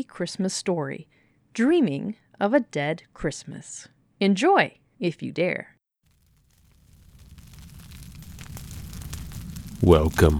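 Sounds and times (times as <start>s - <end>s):
speech: 0.0s - 5.7s, 9.8s - 10.3s
crackling fire sound effect in an audio drama: 6.0s - 10.3s.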